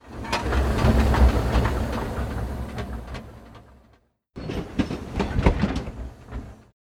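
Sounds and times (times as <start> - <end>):
trolley: 0.0 - 6.7.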